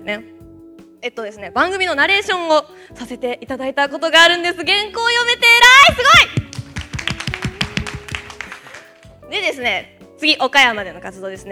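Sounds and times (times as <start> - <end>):
speech: 0.0 - 0.3, 1.0 - 6.4, 9.3 - 11.5
hand clapping: 5.8 - 9.2.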